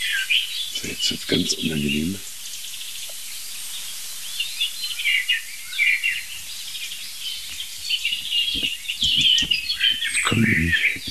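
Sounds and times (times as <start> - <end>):
European robin singing: 0.0 - 11.0
speech: 0.3 - 2.3
soft low rustles and knocks: 7.5 - 10.1.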